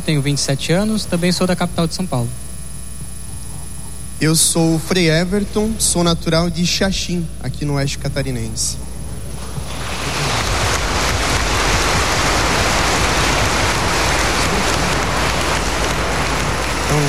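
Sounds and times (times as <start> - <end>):
speech: 0.0 - 2.5, 4.2 - 8.9
applause: 9.3 - 17.0.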